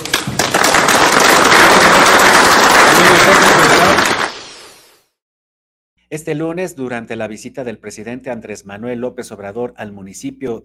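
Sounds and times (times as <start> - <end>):
audience applause: 0.0 - 4.4
speech: 6.1 - 10.6.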